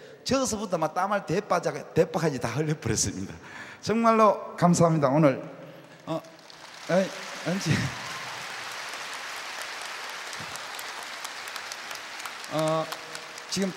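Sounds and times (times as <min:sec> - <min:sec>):
speech: 0:00.3 - 0:08.0, 0:12.5 - 0:13.7
audience applause at a televised concert: 0:06.1 - 0:13.7.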